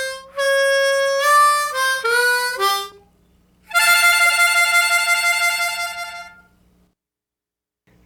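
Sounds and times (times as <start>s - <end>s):
basic slow blues music: 0.0s - 6.5s.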